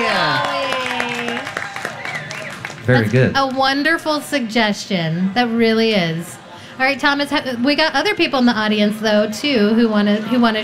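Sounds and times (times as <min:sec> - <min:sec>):
audience cheering at a fair stage show: 0:00.0 - 0:03.3
scattered clapping: 0:00.0 - 0:03.7
speech: 0:02.9 - 0:10.6.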